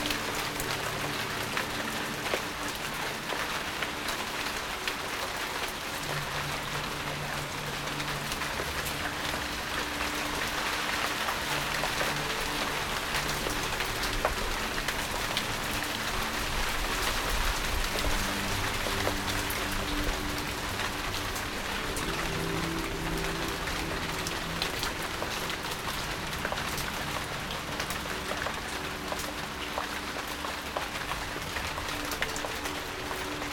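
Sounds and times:
gentle music: 0.0 - 33.5
rain on leaves in a garden: 0.0 - 33.5.

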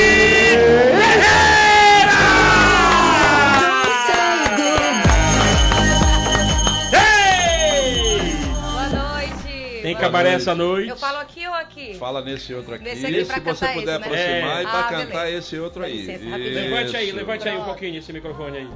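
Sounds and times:
crowd applause: 0.0 - 8.7
speech: 10.1 - 18.7.

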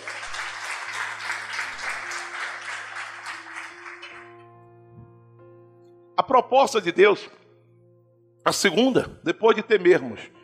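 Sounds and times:
audience applauding: 0.0 - 4.4
speech: 6.2 - 7.4, 8.5 - 10.4.

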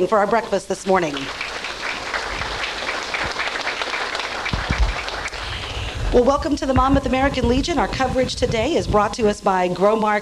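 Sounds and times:
speech: 0.0 - 1.4, 6.1 - 10.2
audience applause: 1.2 - 6.5.

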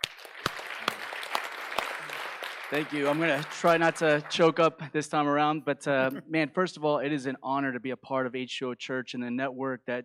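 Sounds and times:
audience hand clapping: 0.0 - 4.7
speech: 2.7 - 10.0.

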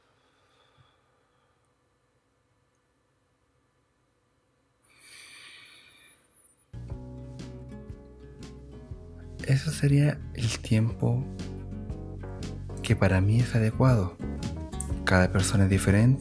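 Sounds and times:
slow inhale during a breathing exercise: 0.0 - 1.8, 4.8 - 6.6
speech: 9.5 - 11.5, 12.9 - 14.2, 15.1 - 16.1.

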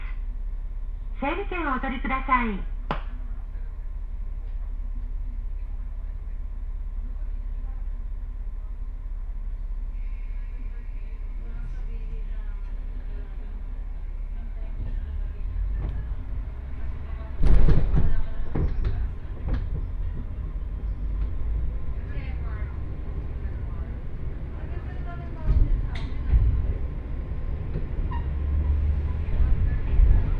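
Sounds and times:
low rumble of a Johana Line train running between Yuden and Johana: 0.0 - 30.3
train clunks and rattles: 14.8 - 21.9, 25.4 - 30.3.

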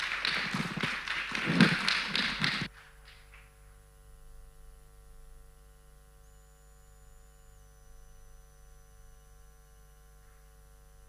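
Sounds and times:
audience applause: 0.0 - 3.2
faint quiet hum: 0.0 - 11.0.

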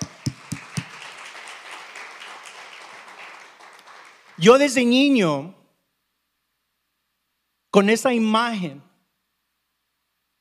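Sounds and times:
audience applauding: 0.0 - 4.9
speech: 4.4 - 5.6, 7.8 - 8.9.

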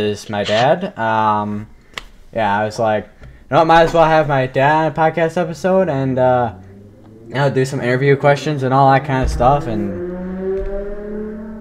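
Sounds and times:
speech: 0.0 - 6.6, 7.3 - 10.1
car passing in the background: 4.8 - 11.6.

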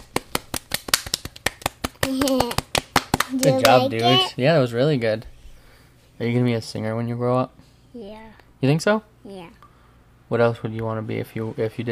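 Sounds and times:
hand clapping: 0.0 - 4.2
speech: 2.1 - 2.6, 3.3 - 5.3, 6.2 - 9.6, 10.3 - 11.9.

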